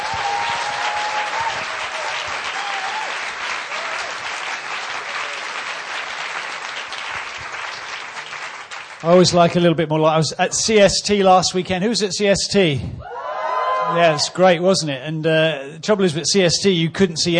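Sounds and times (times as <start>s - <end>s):
audience applause welcoming a preacher at an evening gathering: 0.0s - 9.3s
speech: 9.0s - 13.1s, 13.9s - 17.3s.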